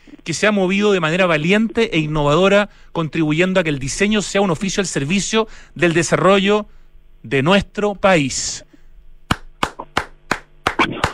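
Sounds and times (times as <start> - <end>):
speech: 0.3 - 8.7
person clapping hands: 9.3 - 11.1.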